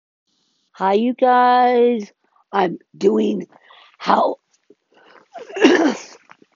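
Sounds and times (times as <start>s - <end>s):
speech: 0.8s - 4.4s
person coughing: 5.4s - 6.2s.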